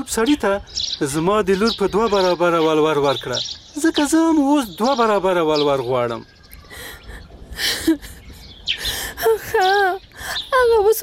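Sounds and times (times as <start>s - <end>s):
speech: 0.0s - 7.0s, 7.6s - 8.1s, 10.6s - 11.0s
woman crying: 6.7s - 11.0s.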